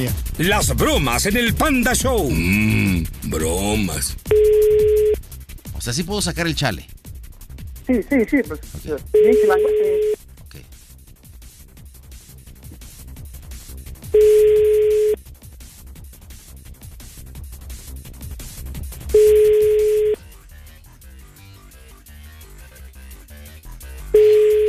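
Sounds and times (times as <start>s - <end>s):
speech: 0.0s - 5.1s, 5.8s - 7.0s, 7.9s - 10.2s
telephone busy signal: 4.3s - 5.2s, 9.2s - 10.2s, 14.2s - 15.2s, 19.2s - 20.2s, 24.2s - 24.6s.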